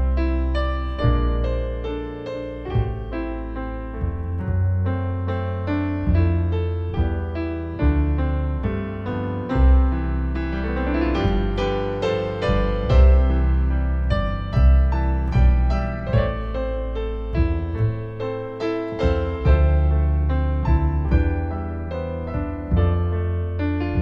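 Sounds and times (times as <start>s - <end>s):
double bass playing Irish music: 0.0s - 24.0s
piano playing Irish music: 0.0s - 24.0s.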